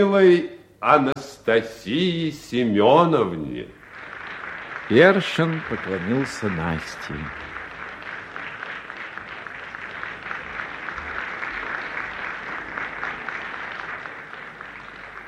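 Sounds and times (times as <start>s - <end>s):
speech: 0.0s - 3.8s, 4.9s - 7.5s
crowd applauding: 3.4s - 15.2s.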